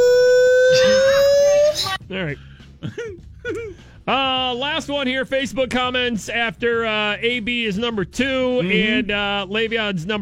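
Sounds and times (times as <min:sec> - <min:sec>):
alarm siren sound effect: 0:00.0 - 0:02.0
speech: 0:02.2 - 0:10.2.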